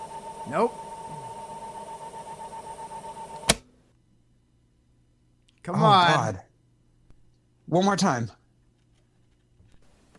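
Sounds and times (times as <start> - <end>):
VHS tape rewinding in a VCR: 0.0 - 3.6
speech: 0.5 - 0.9, 5.6 - 6.4, 7.7 - 8.4.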